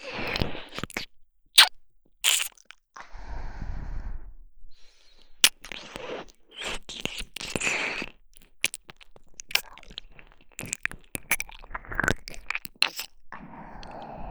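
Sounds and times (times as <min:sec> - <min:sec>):
ear licking in the right ear: 0:00.0 - 0:02.8, 0:05.4 - 0:13.2.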